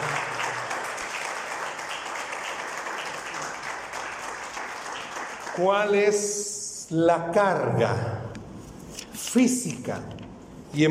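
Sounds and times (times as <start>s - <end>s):
audience applause: 0.0s - 6.2s
speech: 5.6s - 8.2s, 9.3s - 10.8s.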